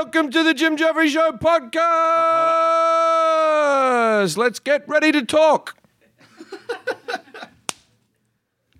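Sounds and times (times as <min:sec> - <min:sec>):
speech: 0:00.2 - 0:03.0, 0:04.1 - 0:05.8
laughter: 0:06.0 - 0:07.6
hand slap for editing sync: 0:07.7 - 0:07.9.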